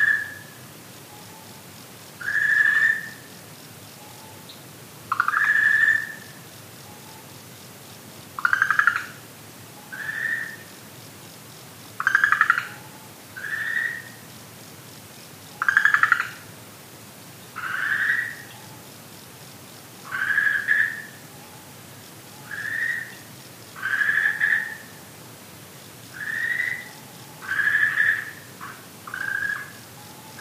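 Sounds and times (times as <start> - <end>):
Okinawa green tree frog calling: 0.0 - 1.6, 2.2 - 7.4, 8.4 - 10.8, 12.0 - 14.3, 15.4 - 16.5, 17.5 - 19.0, 20.0 - 25.1, 26.1 - 30.3.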